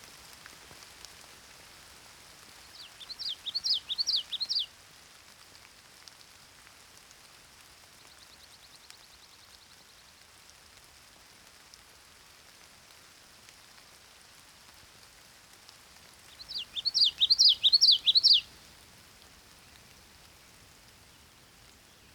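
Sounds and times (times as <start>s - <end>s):
rain: 0.0s - 22.1s
morning songbirds singing: 2.7s - 4.7s, 16.3s - 18.7s, 19.5s - 22.1s
pygmy owl calling: 3.1s - 4.7s, 16.4s - 18.6s.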